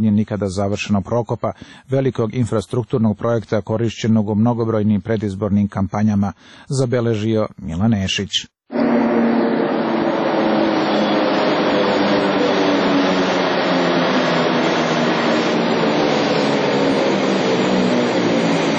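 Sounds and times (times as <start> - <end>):
speech: 0.1 - 8.6
suburban commuter train arriving at platform: 8.8 - 18.7.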